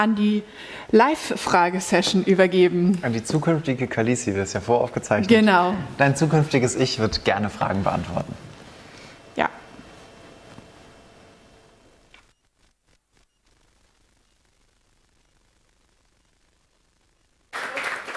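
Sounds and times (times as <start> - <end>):
speech: 0.0 - 8.5
audience applause: 17.5 - 18.1.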